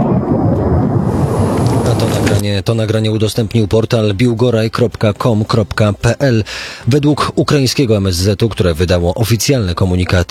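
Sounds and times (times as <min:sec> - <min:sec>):
missile explosion on surveillance camera recording: 0:00.0 - 0:02.5
speech: 0:02.4 - 0:10.2.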